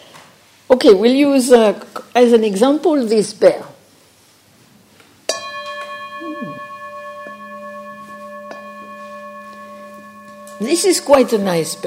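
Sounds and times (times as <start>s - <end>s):
speech: 0.7s - 3.7s, 10.7s - 11.8s
bell being rung: 5.3s - 11.8s.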